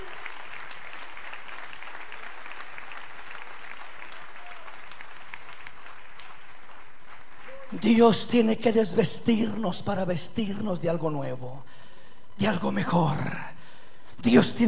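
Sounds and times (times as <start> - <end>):
audience applause: 0.0 - 7.9
speech: 7.7 - 11.7, 12.4 - 13.5, 14.2 - 14.6.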